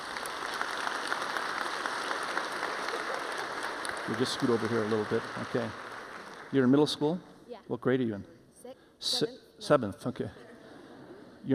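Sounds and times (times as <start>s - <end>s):
audience applause: 0.0s - 7.2s
speech: 4.1s - 5.8s, 6.5s - 8.3s, 9.0s - 10.4s.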